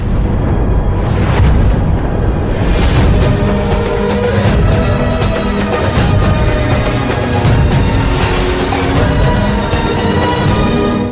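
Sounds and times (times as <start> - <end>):
background music tone: 0.0 - 11.1.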